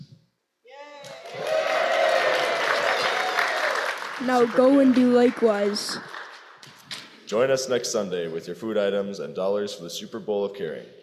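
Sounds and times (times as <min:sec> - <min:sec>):
crowd of fans cheering and applauding at the Super Bowl: 0:01.0 - 0:06.8
speech: 0:04.2 - 0:06.1, 0:07.3 - 0:11.0.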